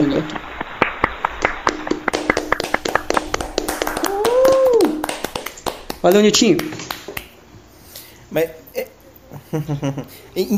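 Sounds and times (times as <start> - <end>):
round of hand clapping from a few people: 0.0 - 7.4
speech: 0.1 - 0.5, 6.0 - 6.9, 8.4 - 8.9, 9.5 - 10.5
laughter: 9.3 - 10.2.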